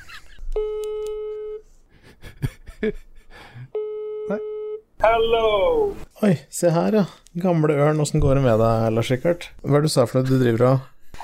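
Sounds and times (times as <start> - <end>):
telephone call tone: 0.6 - 1.6
speech: 2.8 - 3.1, 4.3 - 11.2.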